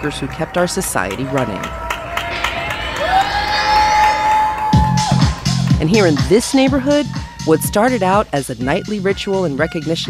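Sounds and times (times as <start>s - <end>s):
speech: 0.0s - 1.9s, 5.8s - 10.0s
neighbors cheering and whooping from their windows: 0.0s - 8.1s
rising pitched tone: 2.0s - 6.4s.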